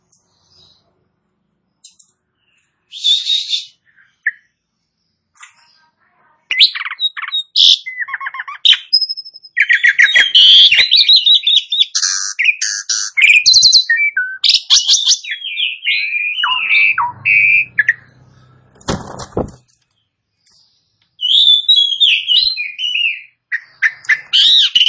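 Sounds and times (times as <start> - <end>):
Asian pied starling song: 0.0 - 24.8.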